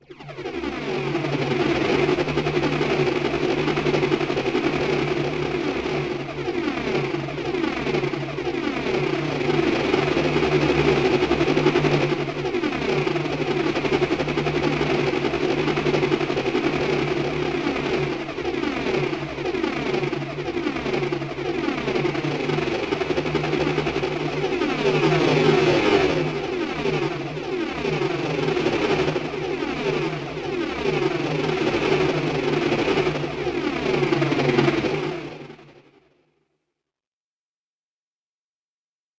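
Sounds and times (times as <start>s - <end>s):
helicopter: 0.0s - 36.6s.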